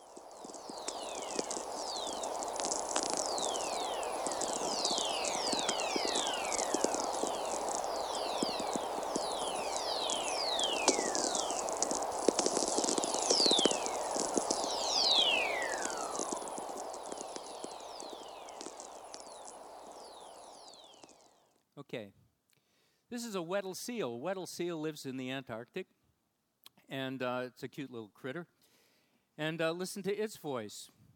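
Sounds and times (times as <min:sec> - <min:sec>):
whistlers picked up by low-frequency radio receivers: 0:00.0 - 0:21.3
static hiss and crackle: 0:00.0 - 0:21.5
speech: 0:23.2 - 0:26.0, 0:26.9 - 0:28.5, 0:29.4 - 0:31.0.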